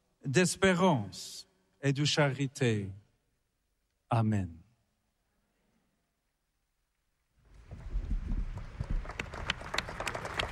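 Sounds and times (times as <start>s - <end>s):
speech: 0.3s - 3.0s, 4.1s - 4.6s
crowd applause after a homily: 8.1s - 10.5s.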